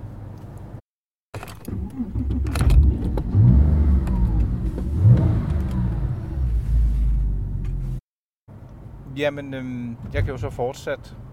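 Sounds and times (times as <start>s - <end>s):
Porsche 911 Carrera engine revving: 1.7s - 7.9s
speech: 9.2s - 11.3s.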